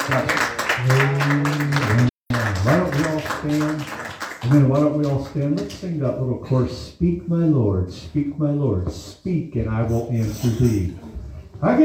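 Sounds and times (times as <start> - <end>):
audience clapping hands: 0.0 - 5.8
speech: 0.1 - 2.1, 4.5 - 11.8.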